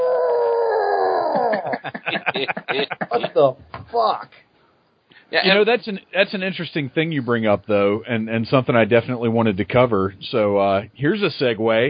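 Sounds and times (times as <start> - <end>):
man imitating Ted Cassidy's roar for Godzilla: 0.0 - 1.7
laughter: 1.3 - 3.4
speech: 1.4 - 4.4, 5.3 - 11.8.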